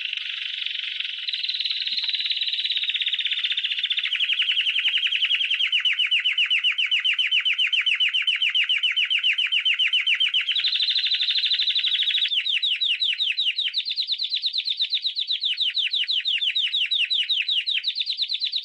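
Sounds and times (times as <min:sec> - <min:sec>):
canary song of rapid buzzy trills: 0:00.0 - 0:18.6.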